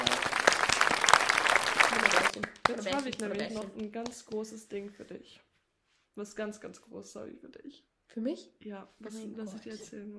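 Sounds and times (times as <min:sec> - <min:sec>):
applause: 0:00.0 - 0:04.4
speech: 0:02.8 - 0:05.5, 0:06.2 - 0:10.1.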